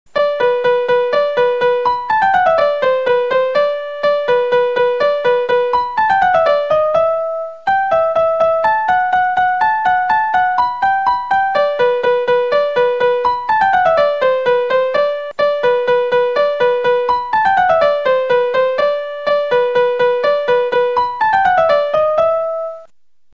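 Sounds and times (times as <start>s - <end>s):
music ringtone: 0.2s - 22.9s.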